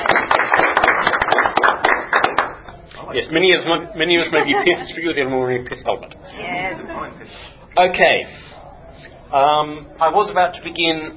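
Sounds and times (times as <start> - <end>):
people clapping at a lecture: 0.0 - 3.0
speech: 3.1 - 8.4, 9.3 - 11.1
laughter: 3.4 - 7.4.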